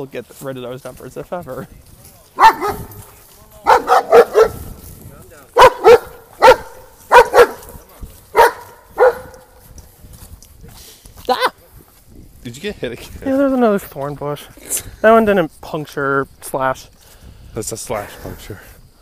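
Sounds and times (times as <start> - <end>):
speech: 0.0 - 2.0, 12.5 - 17.0, 17.6 - 18.7
dog barking loudly: 2.4 - 3.0, 3.6 - 4.6, 5.6 - 9.5.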